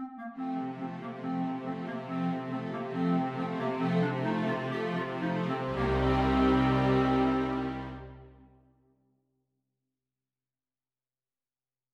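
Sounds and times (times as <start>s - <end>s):
Slovak folk dance music: 0.5s - 8.4s.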